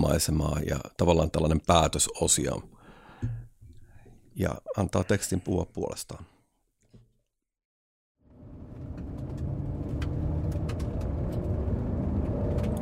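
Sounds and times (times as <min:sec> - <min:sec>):
speech: 0:00.1 - 0:03.4, 0:04.4 - 0:06.3
car driving through countryside in rain: 0:08.3 - 0:12.7.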